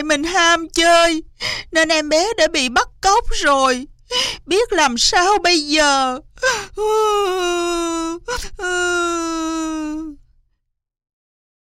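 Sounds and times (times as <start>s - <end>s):
speech: 0.1s - 10.2s
girl bursting into tears sobbing: 6.3s - 10.2s.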